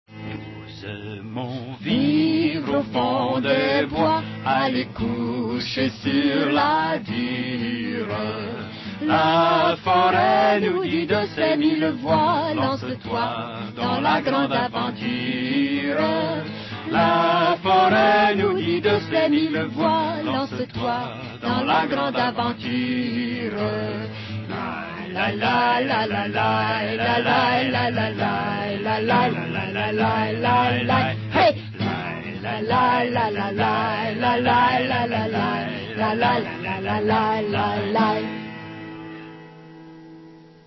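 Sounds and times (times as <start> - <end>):
Russian chant: 0.7 - 38.5.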